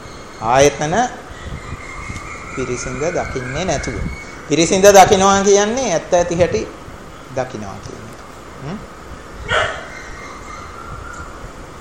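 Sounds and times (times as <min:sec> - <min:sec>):
hiss: 0:00.0 - 0:11.7
speech: 0:00.4 - 0:01.6, 0:02.6 - 0:06.8, 0:07.4 - 0:09.8
dog barking: 0:09.4 - 0:10.0.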